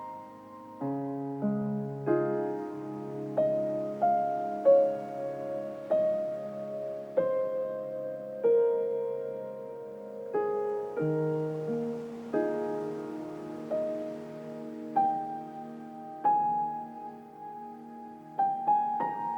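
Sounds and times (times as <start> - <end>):
serene piano: 0.0 - 19.3
ocean waves: 2.2 - 7.2, 10.4 - 16.2.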